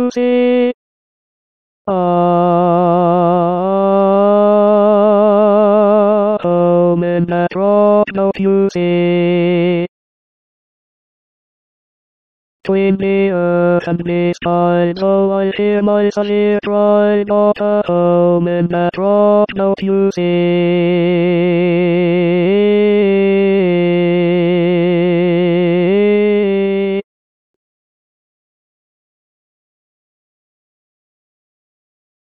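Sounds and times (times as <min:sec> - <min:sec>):
tenor voice singing: 0:00.0 - 0:00.8, 0:01.9 - 0:09.9, 0:12.7 - 0:27.0.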